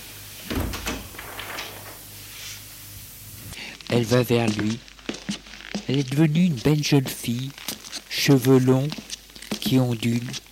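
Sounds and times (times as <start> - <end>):
door closing: 0.4 - 3.6
speech: 3.9 - 4.9, 5.9 - 7.6, 8.2 - 10.4.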